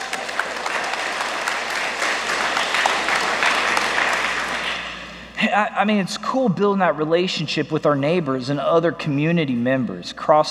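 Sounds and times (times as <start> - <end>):
crowd applauding: 0.0 - 5.4
speech: 5.5 - 10.5.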